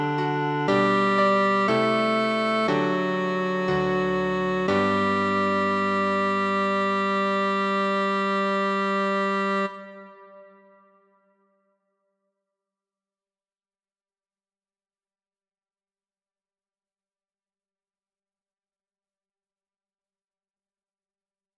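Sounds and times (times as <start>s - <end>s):
largo trombone melody: 0.0s - 10.6s.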